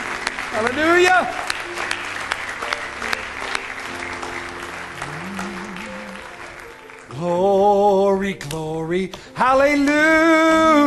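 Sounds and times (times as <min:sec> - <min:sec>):
audience clapping in praise: 0:00.0 - 0:08.7
speech: 0:00.6 - 0:01.4, 0:07.2 - 0:10.8.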